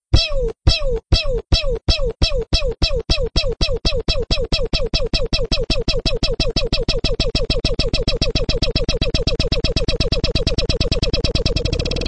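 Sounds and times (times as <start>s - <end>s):
pew pew sound effect: 0.2s - 12.0s.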